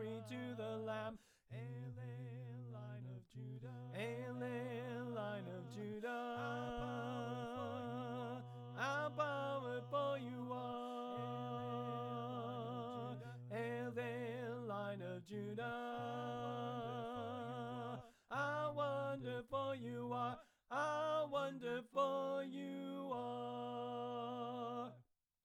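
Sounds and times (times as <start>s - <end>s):
soprano voice chanting: 0.0s - 25.0s.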